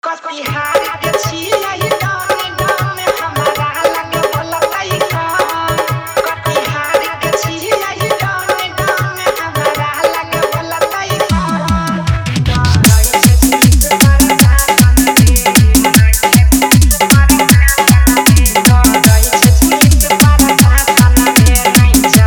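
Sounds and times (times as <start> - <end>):
Maithili Bhojpuri DJ dance song with dholak and bass: 0.5 - 22.2.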